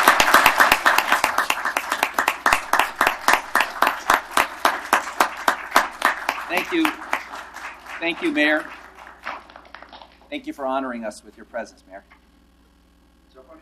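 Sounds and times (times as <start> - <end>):
crowd applause welcoming a delegation: 0.0 - 10.3
speech: 6.7 - 7.0, 8.0 - 8.8, 10.3 - 12.2.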